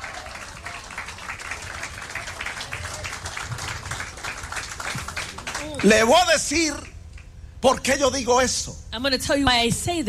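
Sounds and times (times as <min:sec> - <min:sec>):
congregation applauding at a bilingual Spanish-English church service: 0:00.0 - 0:07.3
speech: 0:05.8 - 0:06.9, 0:07.6 - 0:10.0.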